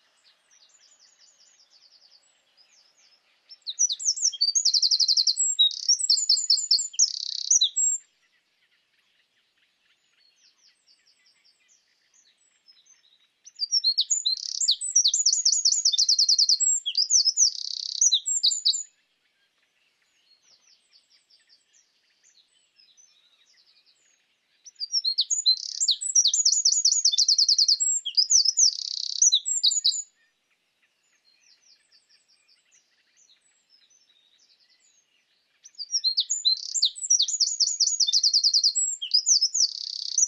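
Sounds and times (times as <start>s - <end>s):
Eurasian wren Troglodytes troglodytes indigenus singing: 0.0s - 8.0s, 12.7s - 18.9s, 24.6s - 30.1s, 35.6s - 40.2s.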